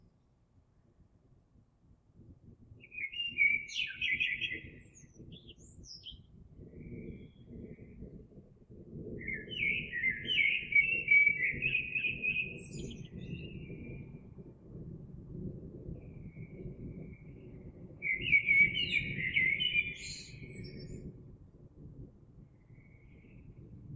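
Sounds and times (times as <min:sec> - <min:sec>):
blackbird: 0:02.8 - 0:07.9, 0:09.2 - 0:14.1, 0:17.1 - 0:21.1.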